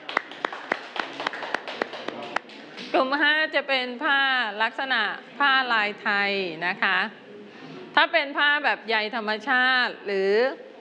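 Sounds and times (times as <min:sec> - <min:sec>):
children clapping for their classmates in a class: 0:00.0 - 0:03.0
speech: 0:03.0 - 0:07.2, 0:08.0 - 0:10.6.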